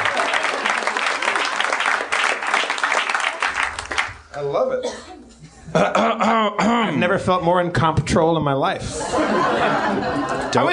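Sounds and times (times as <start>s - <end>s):
laughter: 0.0s - 1.4s, 5.4s - 6.5s, 8.8s - 10.7s
audience applause: 0.0s - 4.2s
speech: 4.4s - 10.7s.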